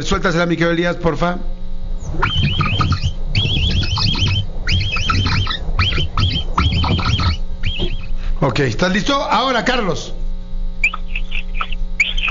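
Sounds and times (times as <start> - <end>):
speech: 0.0 - 2.6, 8.4 - 10.2
capybara call: 2.0 - 8.3, 10.8 - 12.2.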